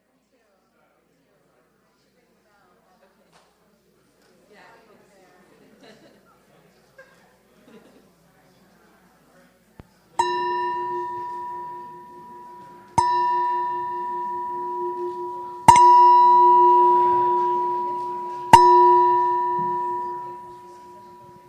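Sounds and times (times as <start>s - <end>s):
meditation bell ringing: 10.2s - 21.4s.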